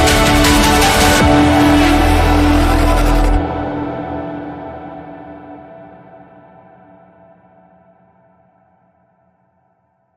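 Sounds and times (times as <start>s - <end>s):
saz: 0.0s - 4.9s.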